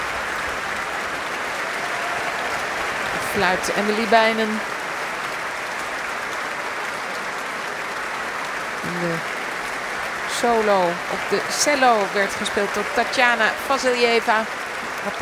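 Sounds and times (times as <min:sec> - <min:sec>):
concert audience applause for musicians: 0:00.0 - 0:15.2
speech: 0:03.4 - 0:04.7, 0:09.0 - 0:09.3, 0:10.4 - 0:15.2.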